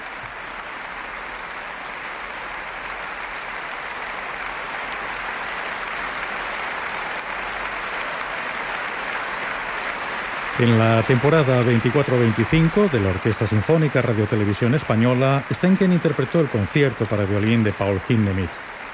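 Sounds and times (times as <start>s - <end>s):
audience applause after a violin concert: 0.0s - 18.9s
speech: 10.6s - 18.7s.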